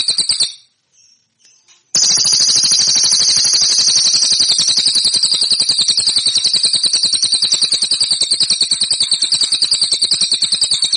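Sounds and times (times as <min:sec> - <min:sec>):
cililin song metallic trill: 0:00.0 - 0:10.9.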